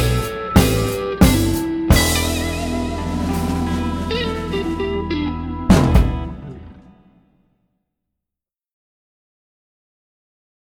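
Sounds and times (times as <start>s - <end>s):
drums: 0.0s - 6.9s.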